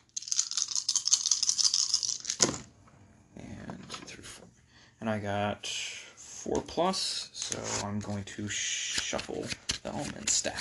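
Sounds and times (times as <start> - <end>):
dice rolling: 0.1 - 2.6
speech: 5.0 - 5.8, 6.4 - 10.5.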